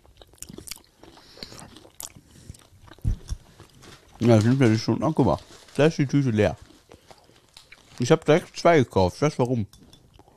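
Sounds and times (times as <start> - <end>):
biting into crunchy nuts: 0.0 - 8.6
speech: 4.2 - 6.6, 8.0 - 9.8.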